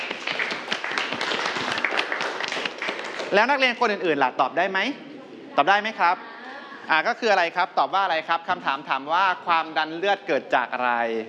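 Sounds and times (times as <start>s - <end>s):
group of students clapping for a classmate: 0.0s - 3.6s
speech: 3.3s - 5.0s, 5.6s - 6.3s, 6.9s - 11.2s.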